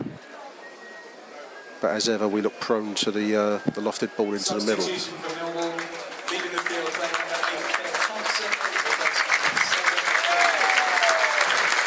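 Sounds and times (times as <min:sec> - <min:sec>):
speech: 0:01.8 - 0:05.6
crowd applause at a football match: 0:04.8 - 0:11.8.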